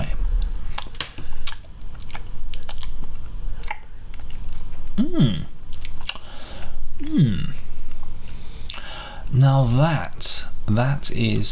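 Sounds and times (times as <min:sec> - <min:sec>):
person chewing while tasting an egg dish: 0:00.2 - 0:08.9
speech: 0:09.5 - 0:11.4.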